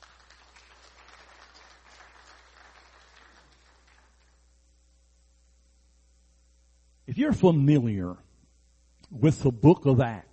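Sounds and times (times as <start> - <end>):
large crowd applauding: 0.0 - 4.4
speech: 7.2 - 8.3, 9.1 - 10.3.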